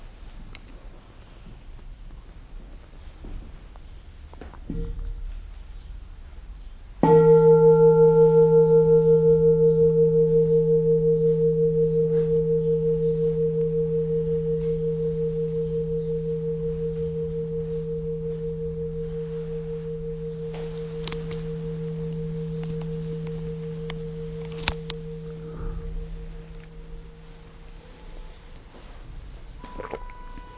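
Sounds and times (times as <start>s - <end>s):
bell ringing: 7.0s - 28.4s, 29.6s - 30.5s.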